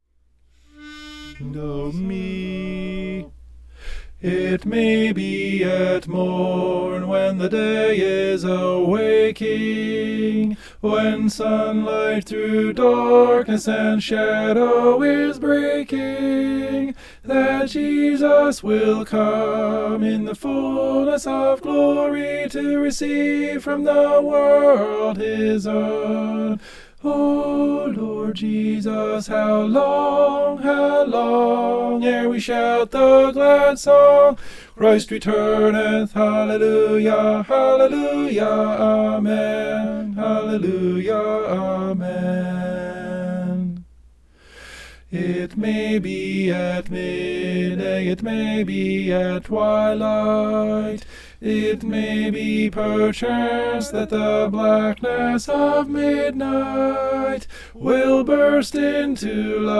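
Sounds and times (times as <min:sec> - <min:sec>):
tenor singing: 0:00.6 - 0:03.4, 0:04.2 - 0:43.9, 0:45.1 - 0:59.7.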